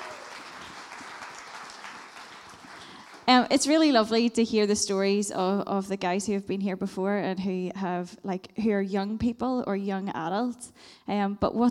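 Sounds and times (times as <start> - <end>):
audience applause: 0.0 - 3.4
speech: 3.3 - 11.7.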